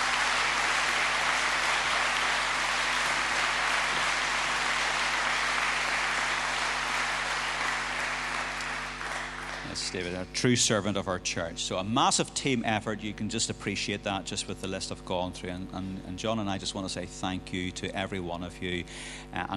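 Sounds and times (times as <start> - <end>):
large crowd applause: 0.0 - 10.1
speech: 9.8 - 19.5.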